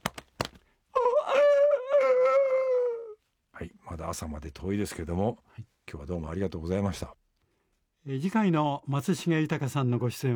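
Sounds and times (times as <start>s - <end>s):
person imitating a chicken's call: 1.0s - 3.2s
speech: 4.0s - 7.2s, 8.0s - 10.3s.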